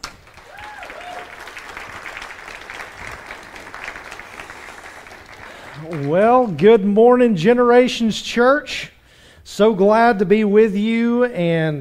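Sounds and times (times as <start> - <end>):
church congregation applause welcoming the pastor to the stage: 0.0 - 6.8
speech: 5.8 - 8.9, 9.6 - 11.7.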